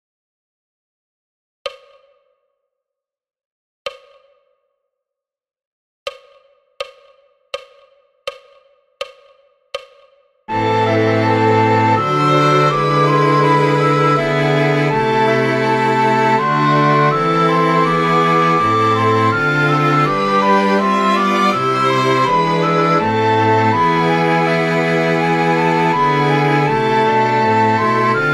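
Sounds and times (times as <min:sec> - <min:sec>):
soprano singing: 0:10.5 - 0:28.3.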